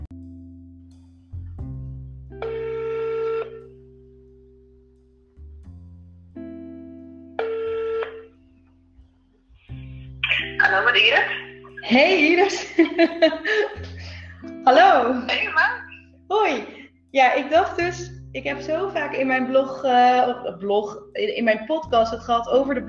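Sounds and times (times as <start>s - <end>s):
telephone call ringing tone: 2.4s - 3.6s, 7.4s - 8.3s
telephone dial tones: 7.4s - 8.3s
speech: 10.8s - 13.9s, 14.6s - 22.8s
laughter: 12.4s - 14.0s.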